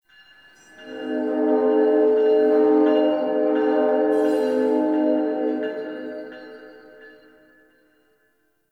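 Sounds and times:
distant train: 0.3s - 7.7s.

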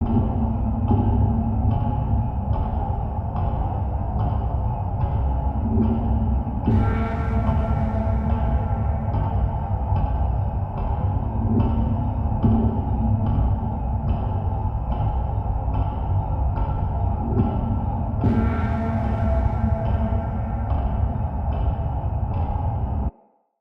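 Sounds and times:
ambient machines loop: 0.0s - 23.1s.

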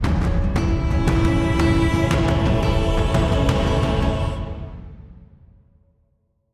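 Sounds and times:
bird rescue stinger: 0.0s - 4.9s.

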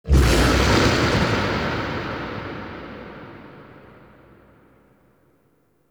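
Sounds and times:
growling: 0.0s - 1.5s.

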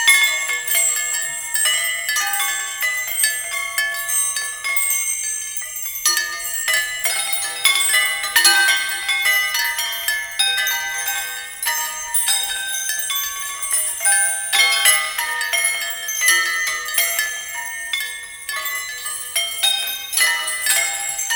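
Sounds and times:
palanquin carriage loop: 0.0s - 21.3s.

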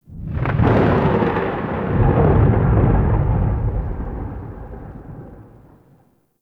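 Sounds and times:
thunder: 0.0s - 6.1s.

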